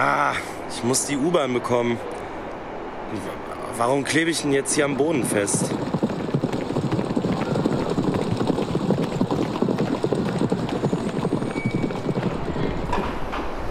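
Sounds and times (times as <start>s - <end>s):
speech: 0.0s - 2.2s, 3.1s - 6.0s
horse hooves clip-clopping in riding hall: 4.9s - 13.6s.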